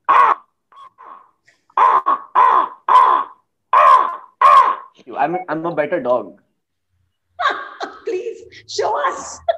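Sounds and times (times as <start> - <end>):
person imitating a crow with loud harsh nasal caws: 0.0 - 5.0
speech: 5.2 - 6.4, 8.7 - 9.4.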